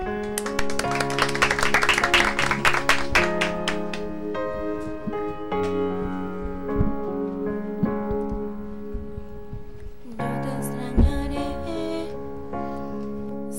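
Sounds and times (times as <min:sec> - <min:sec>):
audience applause: 0:00.2 - 0:04.1
sustained musical tones: 0:00.7 - 0:13.3.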